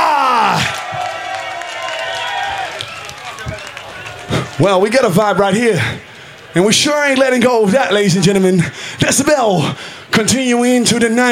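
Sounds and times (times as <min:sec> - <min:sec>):
festival crowd screaming and cheering: 0:00.0 - 0:08.7
speech: 0:04.6 - 0:11.2.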